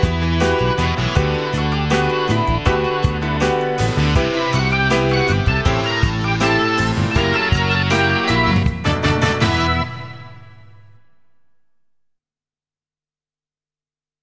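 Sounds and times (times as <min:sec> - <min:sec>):
rock groove music: 0:00.0 - 0:10.2.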